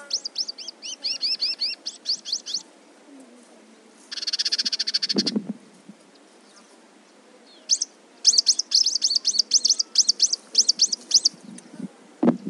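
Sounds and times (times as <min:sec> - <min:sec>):
Dusky Indigobird Vidua funerea mimicking Dusky Twinspot in Angola: 0:00.0 - 0:02.6, 0:04.1 - 0:05.4, 0:07.7 - 0:11.4.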